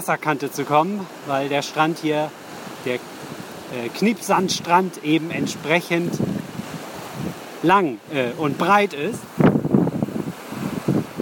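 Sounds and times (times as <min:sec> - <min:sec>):
speech: 0:00.0 - 0:03.1, 0:03.7 - 0:06.4, 0:07.6 - 0:09.4
steady wash of surf from the sea: 0:00.0 - 0:11.2
gusty wind buffeting the microphone: 0:02.4 - 0:11.2.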